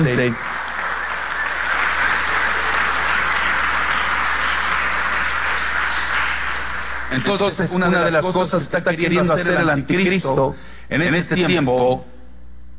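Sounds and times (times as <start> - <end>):
speech: 0.0 - 0.5, 7.1 - 12.1
audience applause: 0.0 - 8.0.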